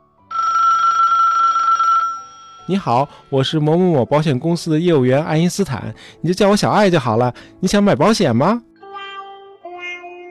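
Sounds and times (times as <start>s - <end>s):
mobile phone ringing: 0.3s - 3.0s
speech: 2.7s - 8.7s.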